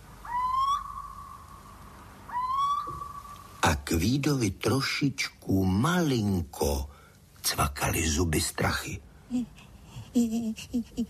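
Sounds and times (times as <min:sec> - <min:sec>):
little owl calling: 0:00.1 - 0:03.6
speech: 0:03.9 - 0:11.0.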